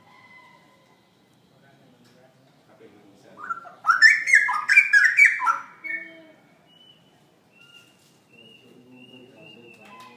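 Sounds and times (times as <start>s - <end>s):
straw-headed bulbul singing: 3.4s - 10.1s.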